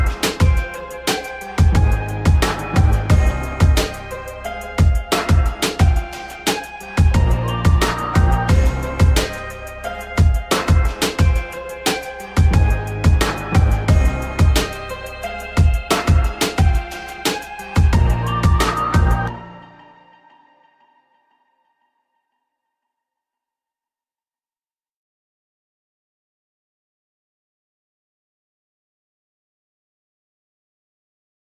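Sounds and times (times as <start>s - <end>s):
epic hard rap beat: 0.0s - 19.4s.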